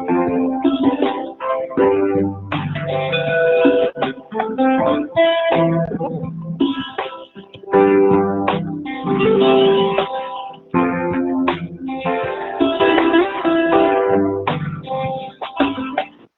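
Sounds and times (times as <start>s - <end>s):
bank hold music: 0.0s - 16.3s.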